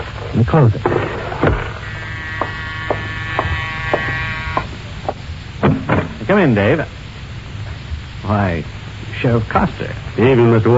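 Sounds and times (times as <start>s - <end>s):
low rumbling background: 0.0s - 10.7s
speech: 0.3s - 1.6s, 6.3s - 7.0s, 8.2s - 10.7s
buzzing doorbell: 1.8s - 4.8s.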